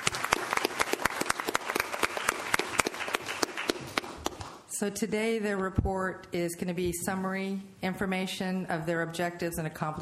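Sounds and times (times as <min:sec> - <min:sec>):
round of applause: 0:00.0 - 0:04.6
speech: 0:04.8 - 0:09.9.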